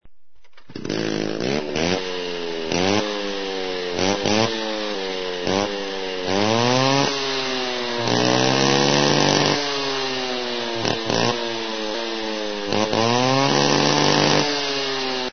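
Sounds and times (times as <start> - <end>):
chainsaw: 0.4 - 15.3.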